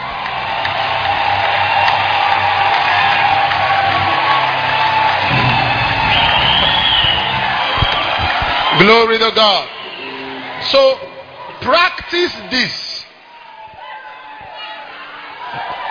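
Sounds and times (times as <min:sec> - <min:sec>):
crowd clapping and cheering: 0:00.0 - 0:12.5, 0:13.2 - 0:15.8
speech: 0:08.8 - 0:09.7, 0:10.7 - 0:12.8.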